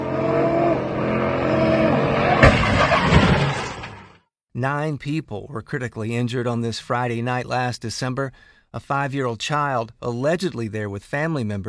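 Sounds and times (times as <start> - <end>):
exhibition driver's car doing donuts on John Rogers Drive in East Birmingham: 0.0 - 4.2
car crashing into a crowd of onlookers: 2.2 - 4.2
speech: 4.6 - 11.6.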